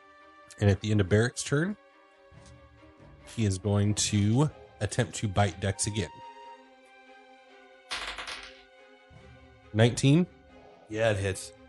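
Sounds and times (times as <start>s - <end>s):
speech: 0.6s - 1.8s, 3.3s - 6.3s, 9.8s - 11.6s
handful of dice being picked up: 7.9s - 8.7s.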